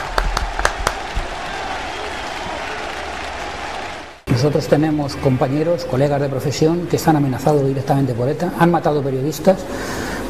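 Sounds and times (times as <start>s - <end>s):
audience applause: 0.0s - 4.3s
speech: 4.4s - 10.2s.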